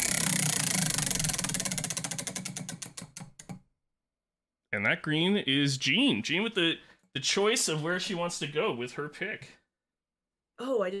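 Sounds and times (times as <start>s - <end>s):
prize wheel spinning for a draft order: 0.0s - 3.6s
speech: 4.8s - 9.6s, 10.6s - 10.9s.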